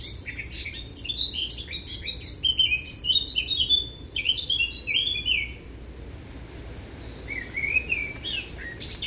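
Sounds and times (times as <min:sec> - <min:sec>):
Eurasian blackcap Sylvia atricapilla song of fast scratchy varied warbling: 0:00.0 - 0:09.0.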